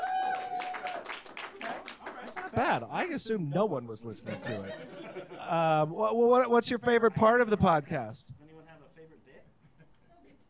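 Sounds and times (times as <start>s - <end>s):
audience applause: 0.0s - 3.2s
laughter: 2.3s - 6.2s
speech: 2.5s - 8.4s.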